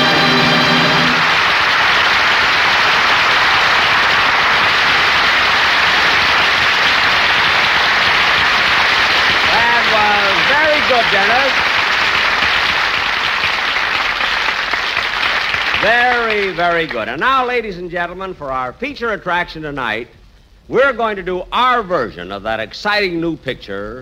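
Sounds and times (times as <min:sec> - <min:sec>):
studio audience applause: 0:00.1 - 0:17.2
speech: 0:16.8 - 0:24.0.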